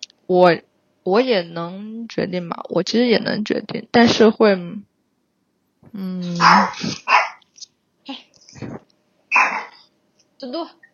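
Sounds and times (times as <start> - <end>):
speech: 0.3 - 4.9, 5.8 - 7.2, 10.4 - 10.8
dog barking harshly: 6.4 - 7.4, 9.3 - 9.9.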